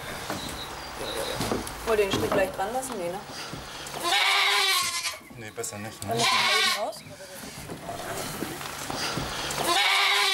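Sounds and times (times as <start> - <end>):
speech: 1.9 - 4.2, 5.4 - 9.8
billy goat bleating: 4.0 - 5.2, 6.1 - 7.0, 9.6 - 10.3.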